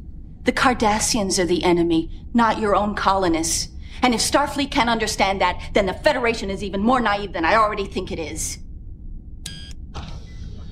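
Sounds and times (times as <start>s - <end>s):
steady low hum: 0.0s - 10.7s
speech: 0.5s - 8.6s
sci-fi sliding door opening sound effect: 10.0s - 10.7s.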